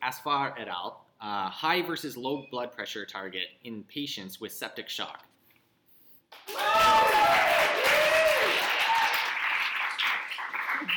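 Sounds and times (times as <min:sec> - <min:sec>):
speech: 0:00.0 - 0:05.3
crowd applauding: 0:06.4 - 0:10.9
whooping cheers: 0:06.5 - 0:09.6.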